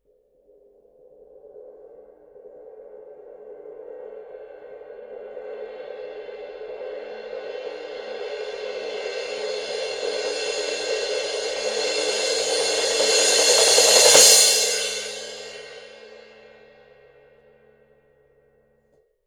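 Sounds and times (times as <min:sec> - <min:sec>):
suspended cymbal roll: 0:04.1 - 0:17.2.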